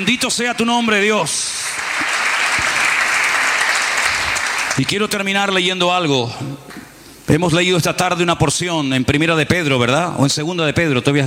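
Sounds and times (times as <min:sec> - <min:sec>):
speech: 0:00.0 - 0:02.2, 0:04.8 - 0:11.2
crowd applause during a church service: 0:01.3 - 0:04.9.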